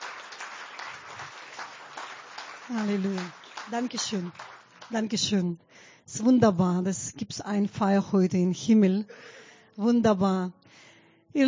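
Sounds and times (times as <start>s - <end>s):
crowd applauding at a worship service: 0.0s - 5.2s
speech: 2.7s - 11.4s.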